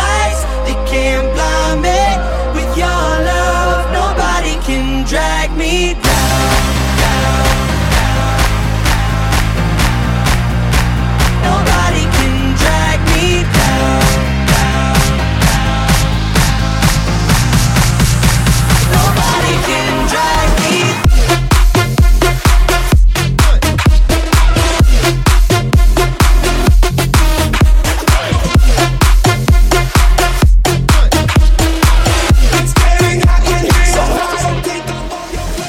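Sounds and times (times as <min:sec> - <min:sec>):
bass house music: 0:00.0 - 0:35.6.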